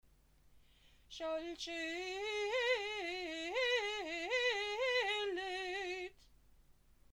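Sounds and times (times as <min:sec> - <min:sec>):
shalshelet cantillation chanting: 0:01.1 - 0:06.1.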